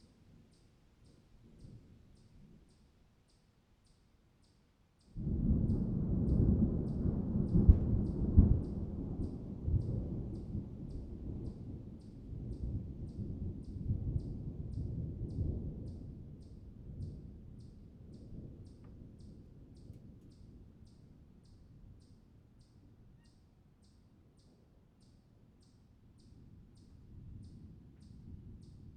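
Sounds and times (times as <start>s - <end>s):
thunderstorm: 5.2s - 20.7s, 26.5s - 28.9s.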